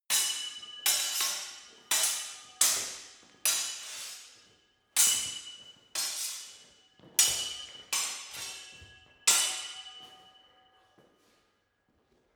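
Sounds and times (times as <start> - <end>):
sword hitting sword: 0.1 - 4.4, 5.0 - 10.3.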